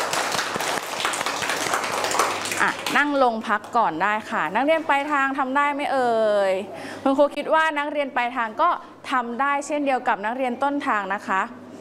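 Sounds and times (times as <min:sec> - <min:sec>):
children clapping hands: 0:00.0 - 0:03.0
speech: 0:02.6 - 0:11.6.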